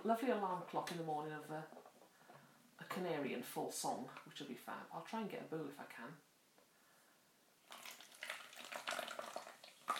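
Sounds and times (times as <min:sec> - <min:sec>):
speech: 0:00.0 - 0:01.8, 0:02.8 - 0:06.3
fizzing liquid: 0:07.6 - 0:09.9.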